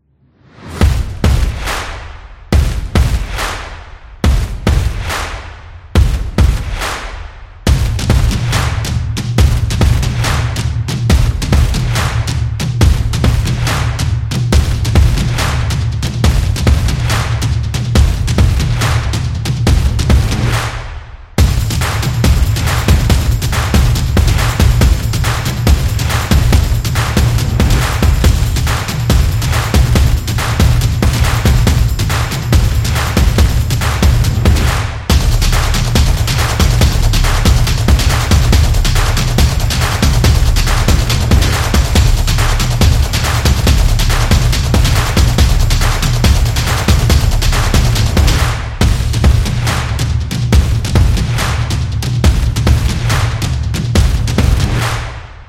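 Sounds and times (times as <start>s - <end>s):
sport drums beat: 0.6s - 55.4s.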